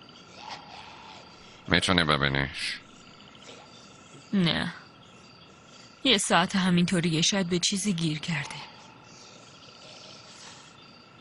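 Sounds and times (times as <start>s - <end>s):
crickets chirping at night: 0.0s - 11.1s
speech: 1.7s - 2.8s, 4.3s - 4.8s, 6.0s - 8.7s.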